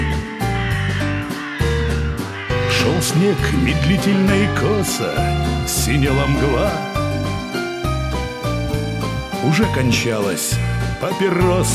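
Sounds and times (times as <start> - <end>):
crows cawing: 0.0 - 9.2
speech: 3.0 - 6.9, 9.4 - 11.7.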